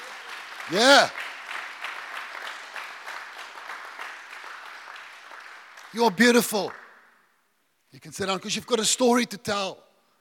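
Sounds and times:
audience applauding: 0.0 - 7.2
speech: 0.7 - 1.2, 6.0 - 6.8, 7.9 - 9.9.

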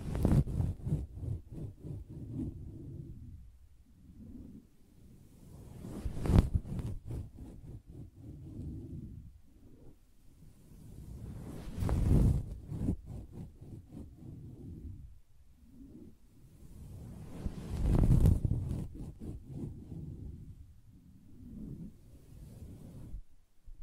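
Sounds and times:
soft fabric surface being tapped and scratched: 0.0 - 2.8, 5.7 - 9.0, 11.4 - 14.9, 17.3 - 20.3.

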